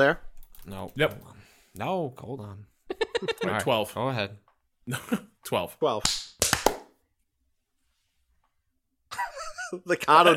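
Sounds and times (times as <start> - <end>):
speech: 0.0 - 6.2, 9.7 - 10.3
hand clap: 6.0 - 7.0.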